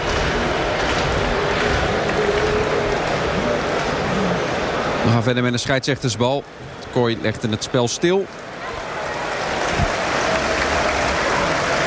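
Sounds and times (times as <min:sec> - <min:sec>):
stadium crowd applause: 0:00.0 - 0:05.4, 0:08.4 - 0:11.8
speech: 0:05.0 - 0:08.8.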